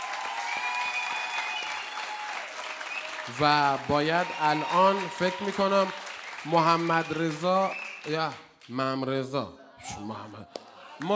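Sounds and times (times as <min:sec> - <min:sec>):
audience applause at a live event: 0:00.0 - 0:08.4
speech: 0:03.3 - 0:11.1.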